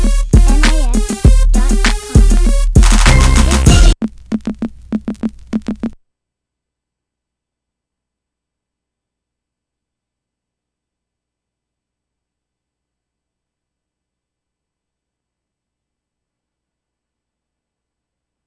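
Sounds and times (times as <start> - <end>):
crunk guitar music: 0.0 - 4.0.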